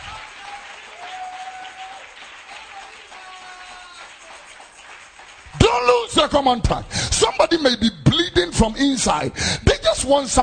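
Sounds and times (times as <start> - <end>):
audience clapping: 0.0 - 7.6
speech: 5.7 - 10.4.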